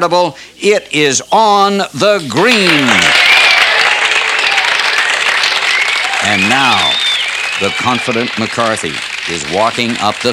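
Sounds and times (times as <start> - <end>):
speech: 0.0 - 3.2, 6.3 - 7.0, 7.6 - 10.3
golf crowd roaring and applauding on the fairway: 2.4 - 10.3.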